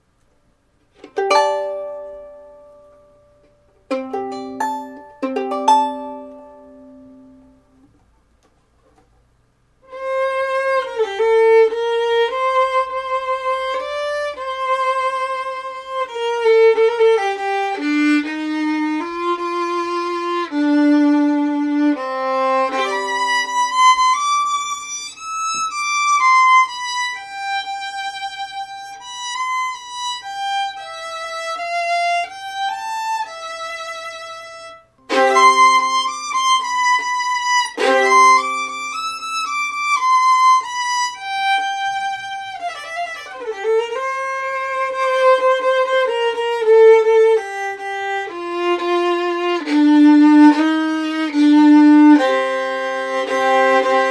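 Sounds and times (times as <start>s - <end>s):
soprano violin: 0.9s - 7.9s, 9.8s - 54.0s.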